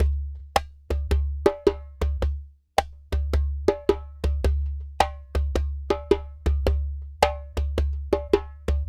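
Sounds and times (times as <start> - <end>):
djembe drumming: 0.0 - 8.8.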